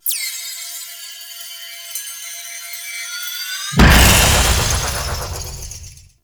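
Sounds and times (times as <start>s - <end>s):
despawn sound effect: 3.8s - 6.0s.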